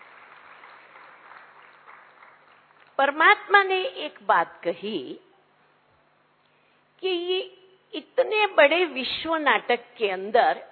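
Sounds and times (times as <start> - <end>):
audience applause: 0.0 - 2.9
speech: 3.0 - 5.3, 7.0 - 10.7.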